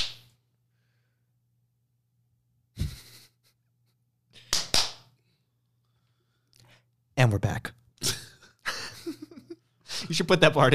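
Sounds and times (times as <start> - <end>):
hand clapping: 0.0 - 0.3, 4.4 - 5.1
speech: 7.2 - 8.2, 10.1 - 10.7.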